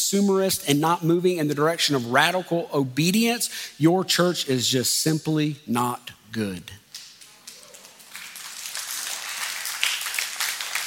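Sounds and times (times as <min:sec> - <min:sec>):
speech: 0:00.1 - 0:06.8
audience applauding: 0:07.3 - 0:10.8.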